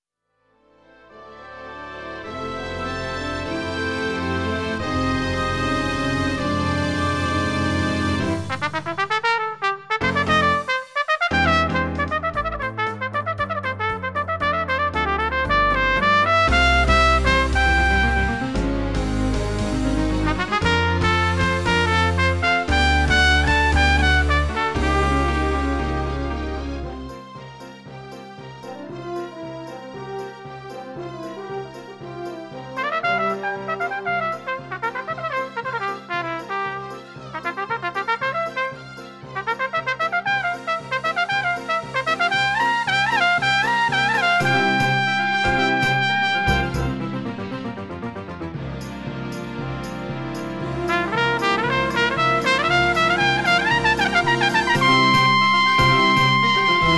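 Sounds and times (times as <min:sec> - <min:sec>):
trumpet: 0:00.6 - 0:27.4, 0:28.6 - 0:56.9
bass guitar: 0:02.4 - 0:09.0, 0:10.0 - 0:10.6, 0:11.3 - 0:27.2, 0:44.0 - 0:56.9
drum kit: 0:04.6 - 0:30.0, 0:30.6 - 0:56.9.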